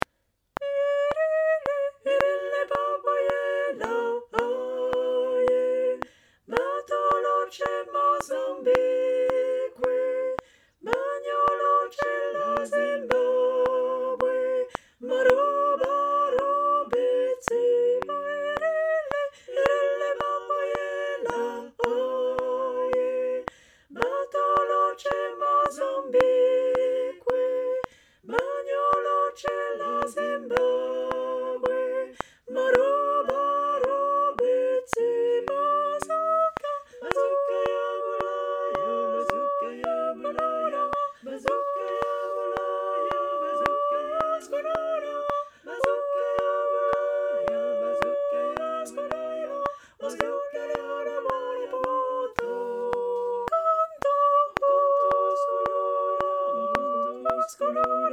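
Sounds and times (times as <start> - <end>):
tenor singing: 0.0 - 58.1.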